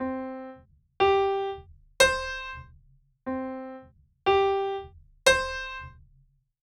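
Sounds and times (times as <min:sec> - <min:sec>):
piano: 0:00.0 - 0:02.6, 0:03.3 - 0:05.6.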